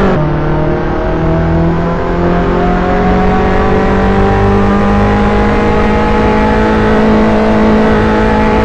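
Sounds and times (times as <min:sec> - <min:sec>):
cars: 0:00.0 - 0:08.6.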